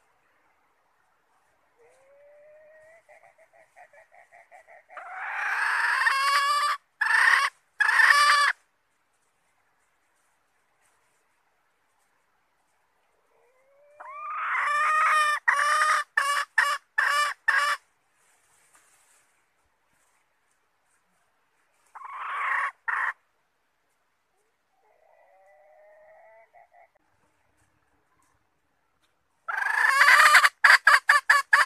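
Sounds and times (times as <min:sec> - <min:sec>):
red junglefowl hen clucking and calling: 0:01.8 - 0:08.6, 0:13.0 - 0:17.9, 0:21.7 - 0:23.3, 0:24.3 - 0:28.4, 0:29.4 - 0:31.6.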